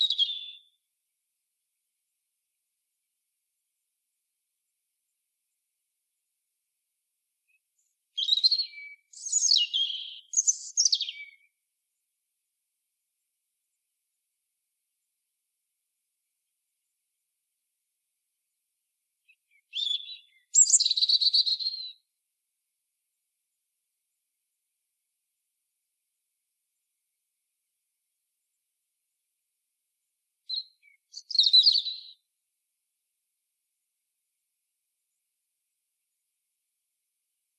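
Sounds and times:
European robin song: 0:00.0 - 0:00.8, 0:07.5 - 0:11.6, 0:19.2 - 0:22.1, 0:30.4 - 0:32.3.

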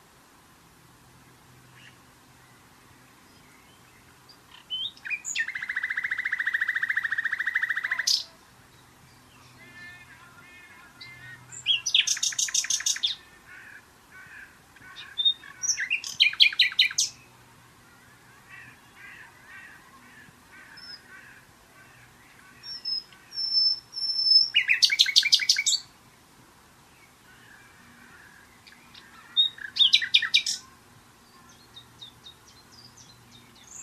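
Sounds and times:
common nightingale song: 0:01.2 - 0:33.8.

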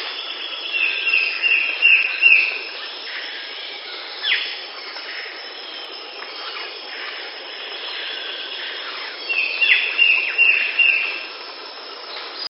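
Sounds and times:
bird calls: 0:00.0 - 0:11.3.

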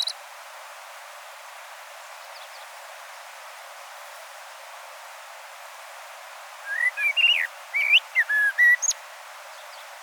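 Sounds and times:
common blackbird Turdus merula warbled whistles and squeaky notes: 0:06.7 - 0:08.9.

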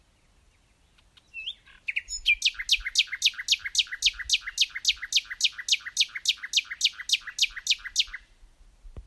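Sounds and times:
Common nightingale song: 0:00.0 - 0:08.5.

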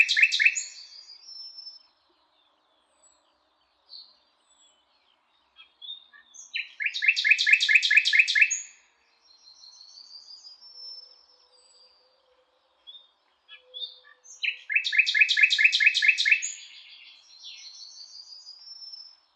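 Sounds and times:
common nightingale singing: 0:00.0 - 0:19.3.

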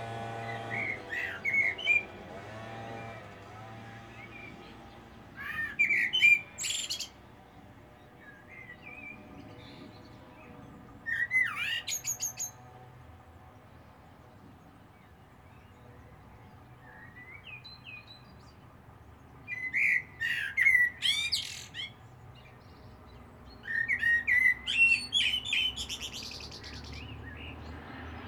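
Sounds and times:
common blackbird singing: 0:00.0 - 0:02.2, 0:04.0 - 0:07.2, 0:08.0 - 0:12.6, 0:19.4 - 0:27.8.

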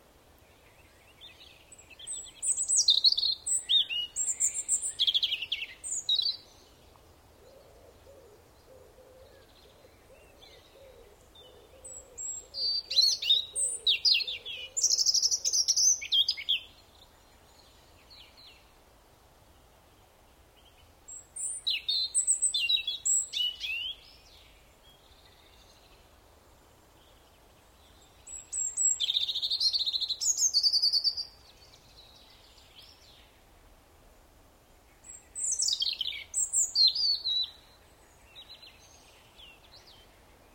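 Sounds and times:
European robin singing: 0:00.5 - 0:18.7, 0:20.6 - 0:26.1, 0:27.0 - 0:33.4, 0:34.9 - 0:40.5.

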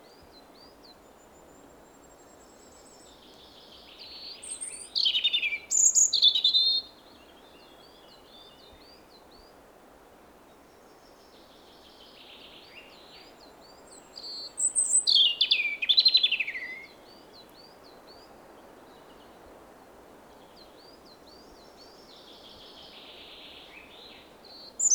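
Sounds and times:
European robin song: 0:00.1 - 0:09.6, 0:11.0 - 0:19.3, 0:20.4 - 0:24.9.

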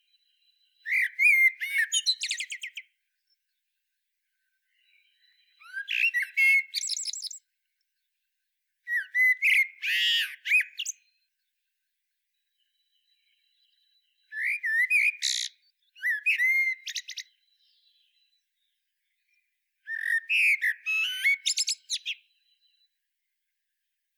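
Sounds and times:
Eurasian blackbird singing: 0:00.0 - 0:03.4, 0:04.6 - 0:07.5, 0:08.8 - 0:11.3, 0:12.5 - 0:23.0.

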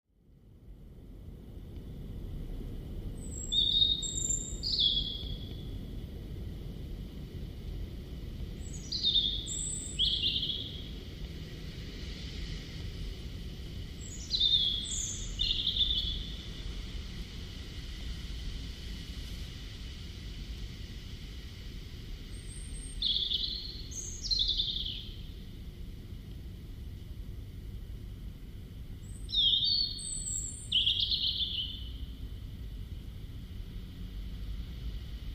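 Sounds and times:
low rumble: 0:00.1 - 0:35.3
European robin singing: 0:03.2 - 0:05.6, 0:08.6 - 0:10.9, 0:14.0 - 0:16.5, 0:22.4 - 0:25.3, 0:29.0 - 0:32.0.

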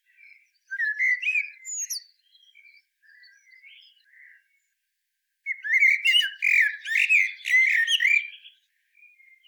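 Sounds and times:
Eurasian blackbird Turdus merula singing warbled phrases with squeaky twittering: 0:00.2 - 0:04.4, 0:05.5 - 0:09.4.

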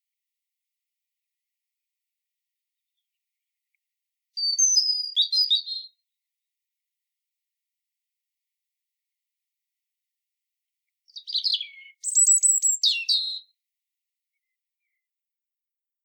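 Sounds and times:
European robin singing: 0:04.4 - 0:06.0, 0:11.1 - 0:13.5.

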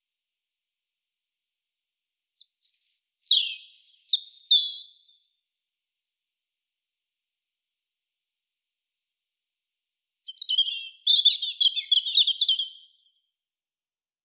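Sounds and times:
European robin singing: 0:02.4 - 0:05.2, 0:10.3 - 0:13.1.

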